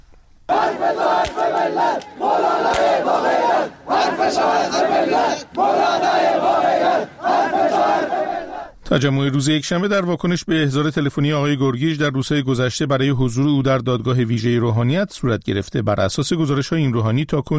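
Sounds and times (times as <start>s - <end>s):
crowd chanting slogans in unison at a rally: 0.5s - 8.8s
speech: 0.8s - 17.5s.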